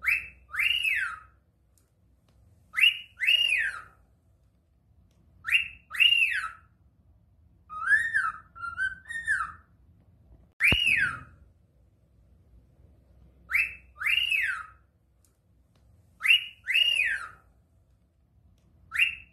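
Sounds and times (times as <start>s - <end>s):
cockatiel screeching: 0.0s - 1.3s, 2.8s - 3.9s, 5.5s - 6.6s, 7.7s - 9.6s, 13.5s - 14.8s, 16.2s - 17.4s
click: 1.7s - 2.4s, 4.4s - 5.3s, 15.2s - 15.9s, 17.9s - 18.8s.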